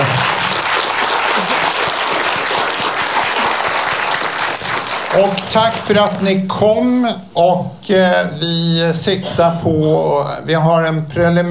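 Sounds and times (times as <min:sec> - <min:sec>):
audience applause: 0:00.0 - 0:06.1
speech: 0:05.2 - 0:11.4.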